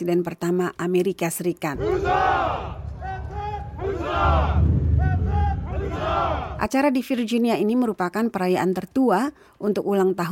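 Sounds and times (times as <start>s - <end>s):
speech: 0.0s - 2.7s, 4.2s - 4.7s, 6.1s - 10.2s
crowd cheering at George Washington's birthday parade in Alexandria, Virginia: 1.8s - 6.6s
low rumble of street noise: 1.8s - 6.7s.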